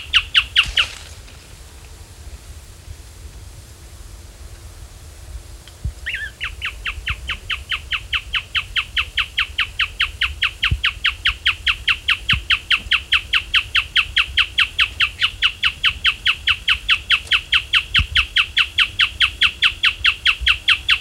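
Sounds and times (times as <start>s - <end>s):
bird calls: 0.0s - 1.2s, 6.0s - 20.9s.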